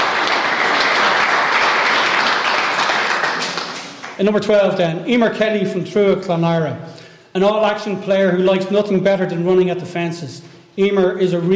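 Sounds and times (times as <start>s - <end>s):
audience applause: 0.0s - 4.2s
speech: 4.2s - 11.5s.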